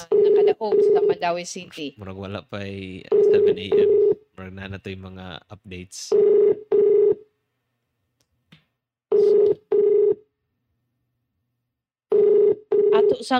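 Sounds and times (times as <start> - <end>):
ringback tone on a phone call to Cebu City Hall: 0.0 - 1.3, 3.1 - 4.2, 6.1 - 7.2, 9.1 - 10.2, 12.1 - 13.3
speech: 0.6 - 6.7, 13.1 - 13.3.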